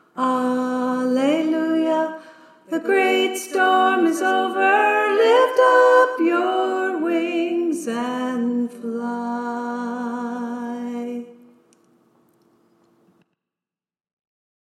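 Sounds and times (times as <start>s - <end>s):
soprano singing: 0.0s - 11.5s.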